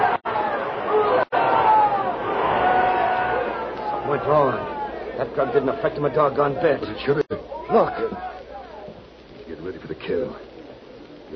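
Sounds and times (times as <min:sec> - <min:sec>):
large enthusiastic crowd screaming and roaring: 0:00.0 - 0:06.8
speech: 0:04.2 - 0:08.3, 0:10.1 - 0:10.6.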